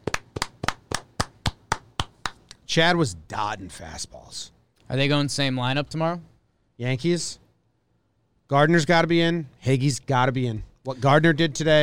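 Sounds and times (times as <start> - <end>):
hand clapping: 0.0 - 2.6
speech: 2.7 - 7.4, 8.5 - 11.8.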